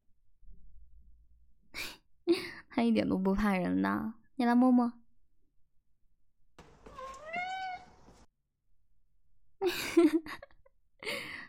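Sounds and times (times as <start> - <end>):
speech: 2.8 - 5.0
white blue-eyed hard-of-hearing Maine Coon cat meowing loudly: 6.8 - 8.0.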